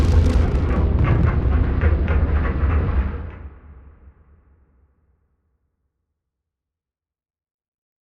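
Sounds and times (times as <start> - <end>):
action thriller tension and chase music: 0.0 - 4.1.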